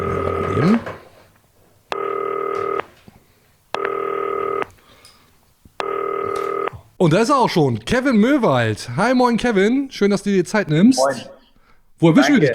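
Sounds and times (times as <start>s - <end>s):
FaceTime call ringing: 0.0s - 1.0s, 1.9s - 3.0s, 3.8s - 4.7s, 5.8s - 6.9s
speech: 0.6s - 1.0s, 7.0s - 11.4s, 12.0s - 12.5s.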